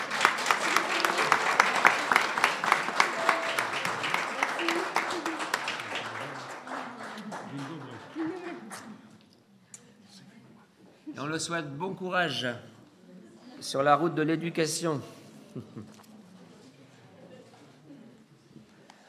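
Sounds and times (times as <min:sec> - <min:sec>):
audience applause: 0:00.0 - 0:08.9
speech: 0:11.4 - 0:12.7, 0:13.7 - 0:16.0.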